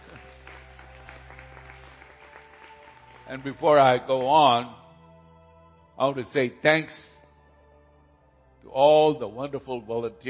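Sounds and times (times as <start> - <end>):
audience applause: 0.0 - 3.8
speech: 3.3 - 4.8, 6.0 - 7.1, 8.7 - 10.2.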